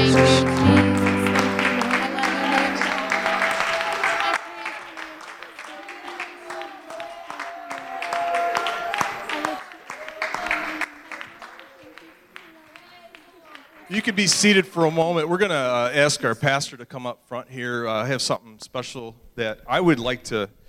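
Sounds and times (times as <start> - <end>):
hand clapping: 0.4 - 14.1
speech: 14.2 - 20.6.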